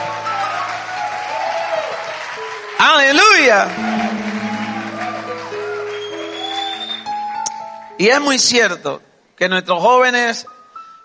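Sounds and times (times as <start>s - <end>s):
audience applause: 0.0s - 7.8s
speech: 2.8s - 4.0s, 8.0s - 10.5s.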